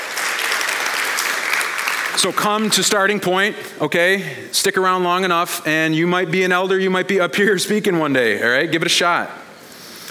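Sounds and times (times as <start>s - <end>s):
audience clapping: 0.0s - 3.0s
speech: 2.2s - 9.4s.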